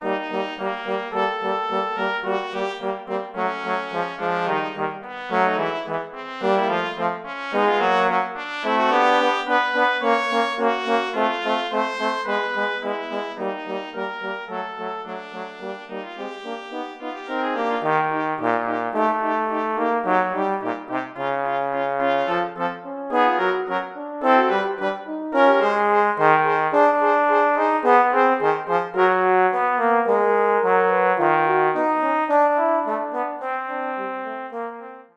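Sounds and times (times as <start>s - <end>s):
brass trio playing: 0.0s - 35.1s.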